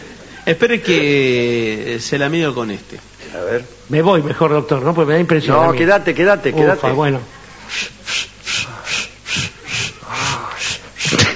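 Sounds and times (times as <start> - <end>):
speech: 0.5 - 8.3
person panting heavily: 7.7 - 11.3.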